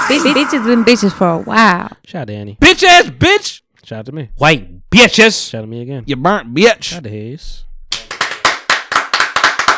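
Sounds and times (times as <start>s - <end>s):
speech: 0.1s - 8.1s
applause: 7.9s - 9.7s.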